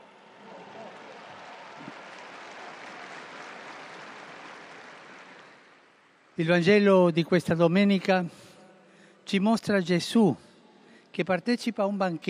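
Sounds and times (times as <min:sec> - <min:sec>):
crowd applauding the firefighters: 0:00.0 - 0:06.5
speech: 0:06.4 - 0:08.4, 0:09.3 - 0:10.4, 0:11.1 - 0:12.2.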